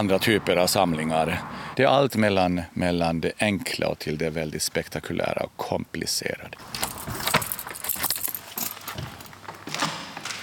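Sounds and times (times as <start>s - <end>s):
speech: 0.0s - 7.3s
bunch of keys jangling: 6.8s - 9.4s.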